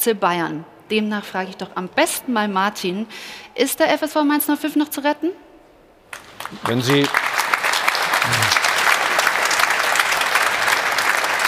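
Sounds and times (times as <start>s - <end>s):
speech: 0.0s - 5.4s, 6.4s - 7.2s
audience applause: 6.1s - 11.4s.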